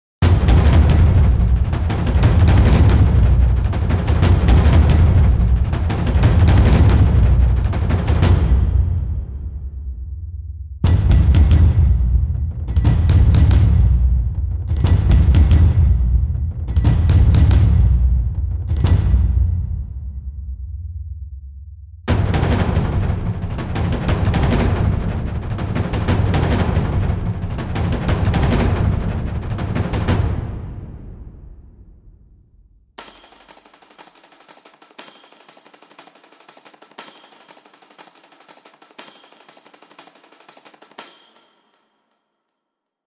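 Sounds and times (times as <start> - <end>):
basic drum accents in sixteenth triplet feel on low mid and high: 0.2 - 9.9, 10.8 - 20.0, 22.1 - 31.3, 33.0 - 41.9.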